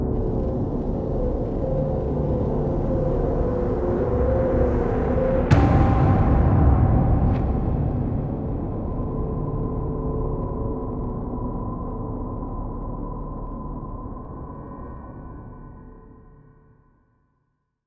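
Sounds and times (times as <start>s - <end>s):
drone: 0.2s - 13.2s
spaceships passing: 0.5s - 11.2s.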